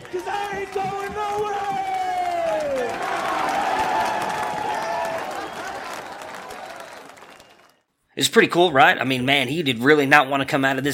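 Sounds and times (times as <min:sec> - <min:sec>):
stadium crowd cheering: 0:00.0 - 0:07.9
speech: 0:00.1 - 0:01.9, 0:08.2 - 0:10.9.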